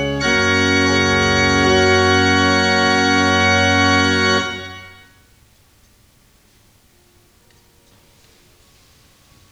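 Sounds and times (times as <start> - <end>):
fugue in F: 0.0 - 5.0.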